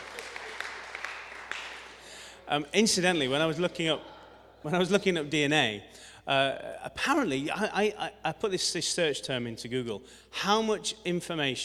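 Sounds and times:
round of applause: 0.0s - 2.4s
speech: 2.5s - 11.6s.

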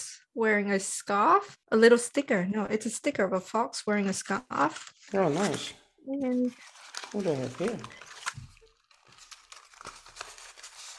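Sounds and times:
speech: 0.0s - 8.0s
Christmas cracker paper hat being unfolded: 4.6s - 10.9s.

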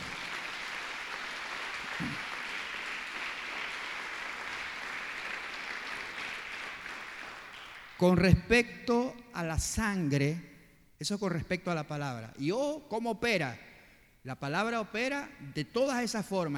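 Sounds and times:
audience applause: 0.0s - 8.0s
speech: 2.0s - 2.2s, 8.0s - 16.5s.

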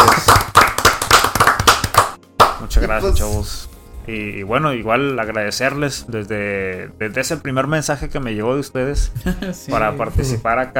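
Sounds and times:
applause for guest: 0.0s - 2.8s
speech: 2.9s - 10.7s
laughter: 9.0s - 9.8s.

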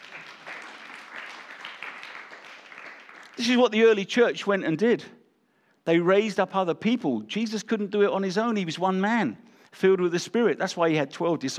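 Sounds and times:
crowd clapping: 0.0s - 3.8s
speech: 3.4s - 5.2s, 5.8s - 11.5s.

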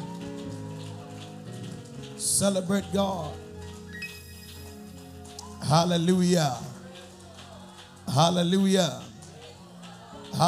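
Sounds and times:
crowd clapping hands: 0.0s - 10.4s
speech: 2.3s - 3.4s, 5.7s - 6.7s, 8.2s - 9.1s.

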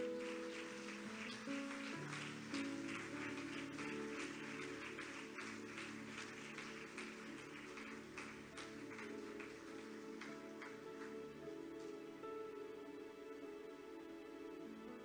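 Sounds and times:
audience applause: 0.0s - 11.2s
sustained low keyboard chords: 0.0s - 15.0s.

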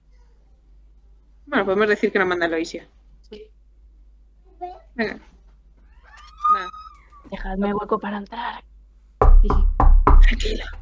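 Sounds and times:
speech: 1.5s - 3.6s, 4.6s - 5.3s, 6.5s - 8.7s, 9.4s - 10.8s
knocking on a door: 9.2s - 10.8s.

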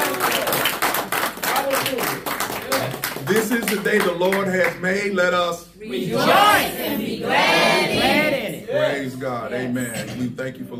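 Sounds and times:
audience hand clapping: 0.0s - 4.8s
speech: 3.3s - 10.7s.

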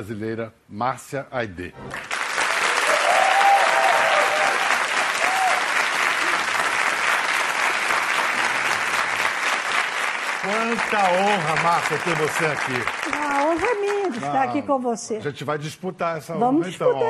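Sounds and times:
speech: 0.0s - 2.1s, 10.4s - 13.3s, 14.1s - 17.0s
audience applause: 1.9s - 14.5s.

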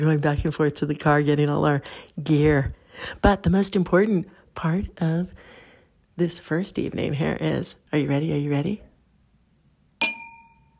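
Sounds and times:
speech: 0.0s - 5.5s, 6.2s - 8.9s
wine glasses clinking: 10.0s - 10.7s.

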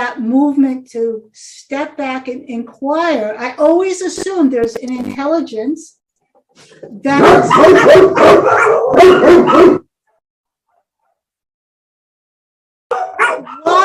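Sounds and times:
speech: 0.1s - 6.0s, 6.6s - 9.9s
dog barking: 7.1s - 11.2s, 12.9s - 13.8s.

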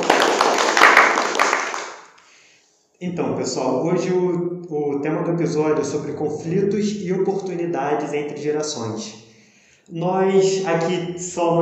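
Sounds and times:
applause: 0.0s - 2.1s
speech: 3.0s - 9.2s, 9.9s - 11.5s.

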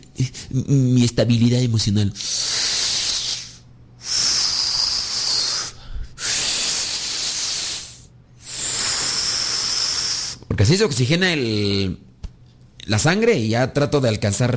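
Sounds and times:
speech: 0.0s - 2.5s, 10.6s - 12.1s, 12.9s - 14.5s
slow deep breaths: 2.2s - 10.5s.

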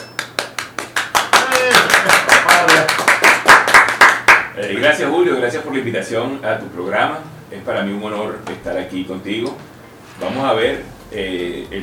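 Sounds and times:
applause: 0.0s - 4.5s
speech: 4.6s - 11.8s.

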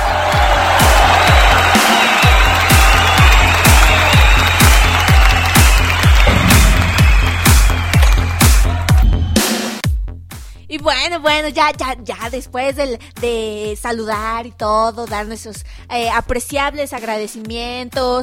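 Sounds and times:
applause: 0.0s - 9.5s
cheering: 0.0s - 9.6s
speech: 11.1s - 18.2s.

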